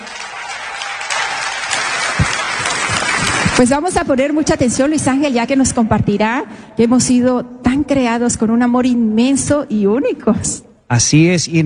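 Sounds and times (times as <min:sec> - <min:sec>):
crowd applauding: 0:00.0 - 0:04.3
speech: 0:03.6 - 0:11.6.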